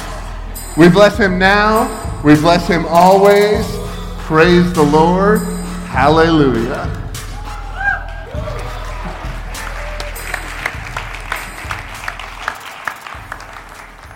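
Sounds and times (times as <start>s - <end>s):
speech: 0.8s - 7.0s
audience applause: 8.0s - 14.1s.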